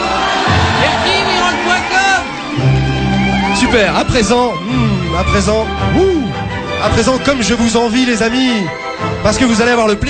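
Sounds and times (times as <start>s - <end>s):
crowd applauding: 0.0s - 4.6s
speech: 3.7s - 10.0s.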